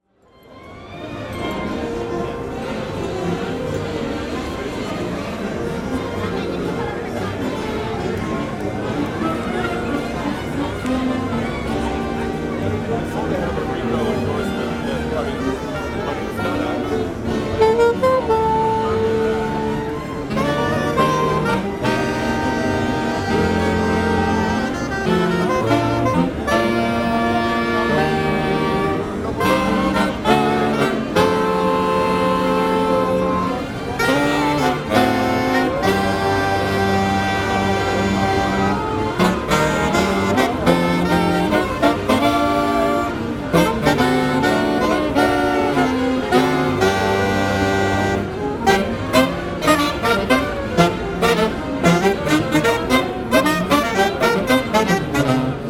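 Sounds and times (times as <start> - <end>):
horn: 0.0 - 55.6.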